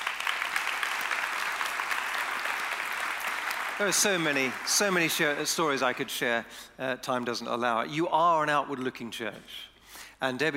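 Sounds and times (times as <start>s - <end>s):
crowd applause: 0.0s - 6.1s
speech: 3.8s - 10.5s.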